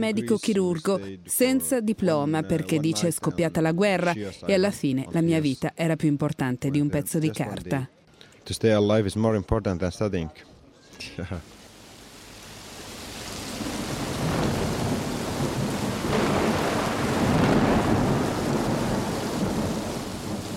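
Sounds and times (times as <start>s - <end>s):
speech: 0.0s - 11.6s
heavy rain: 11.4s - 20.5s.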